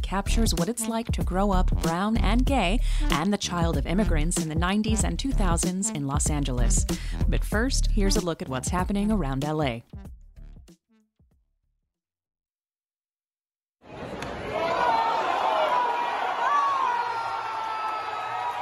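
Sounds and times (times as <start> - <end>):
speech: 0.1 - 10.2
stadium crowd at Dodger Stadium cheering a home run: 13.8 - 18.6.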